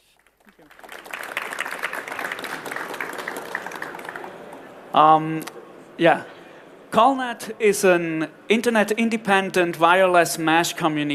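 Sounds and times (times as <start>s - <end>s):
audience applause: 0.0s - 4.9s
speech: 5.0s - 6.3s, 6.9s - 11.1s.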